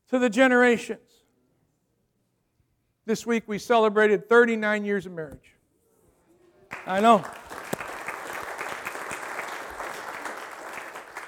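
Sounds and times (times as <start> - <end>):
speech: 0.1 - 1.2, 3.1 - 5.6, 6.8 - 7.5
audience applause: 6.7 - 11.2.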